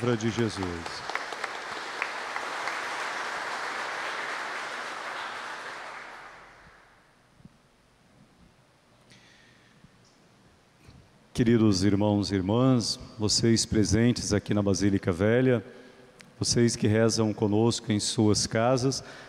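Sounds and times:
speech: 0.0s - 1.1s, 11.4s - 15.8s, 16.4s - 19.2s
audience applauding: 0.0s - 7.0s.

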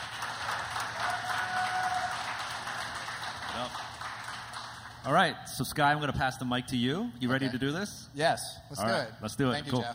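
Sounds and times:
audience applause: 0.0s - 5.0s
speech: 5.0s - 9.9s.

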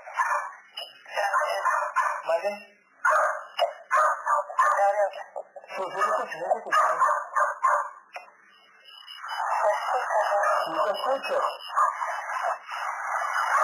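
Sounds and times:
dogs barking: 0.0s - 0.6s, 1.2s - 2.4s, 3.0s - 5.2s, 5.8s - 8.0s, 9.4s - 13.6s
speech: 2.3s - 2.8s, 11.1s - 11.6s.

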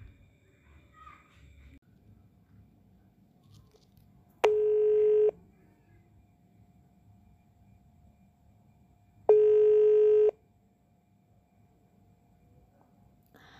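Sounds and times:
faint noise: 0.0s - 13.5s
telephone ringing tone while calling someone: 4.4s - 5.4s, 9.3s - 10.4s.

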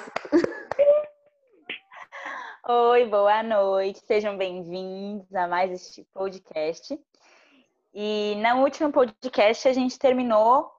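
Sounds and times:
hand claps: 0.0s - 1.0s
laughter: 0.0s - 1.0s
speech: 2.7s - 7.3s, 7.9s - 10.7s.

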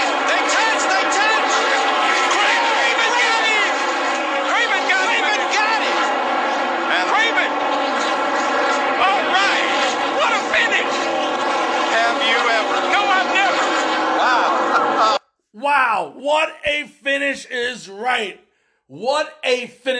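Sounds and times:
stock car engines roaring toward the finish line at Darlington: 0.0s - 15.2s
excited commentary: 0.0s - 19.9s
speech: 15.8s - 19.9s.

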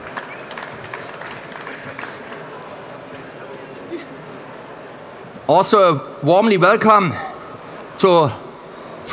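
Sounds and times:
audience applause: 0.0s - 3.3s
speech: 5.5s - 7.2s, 8.0s - 8.4s.

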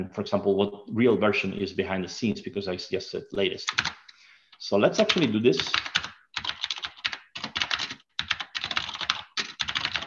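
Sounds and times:
speech: 0.0s - 4.0s, 4.6s - 5.9s
typing a command on a computer keyboard: 3.7s - 4.0s, 5.0s - 10.0s.

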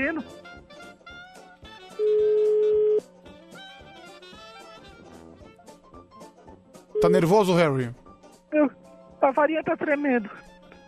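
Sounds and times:
speech: 0.0s - 0.7s, 7.0s - 10.5s
telephone tone while a number is dialed: 2.0s - 3.0s, 7.0s - 7.6s.

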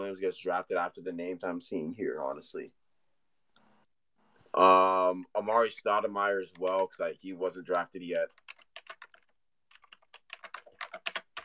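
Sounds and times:
speech: 0.1s - 2.8s, 4.5s - 8.5s
names being typed on a computer keyboard: 8.3s - 11.4s.

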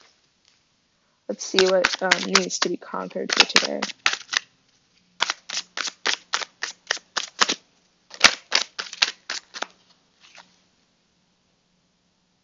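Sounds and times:
speech: 1.3s - 4.0s
tarot cards being shuffled for a reading: 1.3s - 4.5s, 5.2s - 10.5s.

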